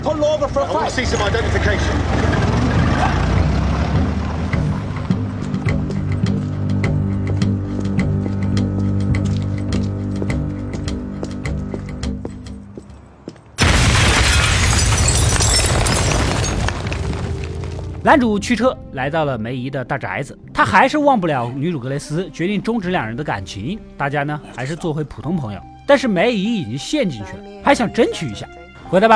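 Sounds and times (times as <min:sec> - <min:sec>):
speech: 0:00.1 - 0:02.4, 0:18.1 - 0:29.1
music with rhythmic percussion: 0:03.4 - 0:12.8
bomb going off at a general's mansion door in Peaky Blinders: 0:13.6 - 0:18.1.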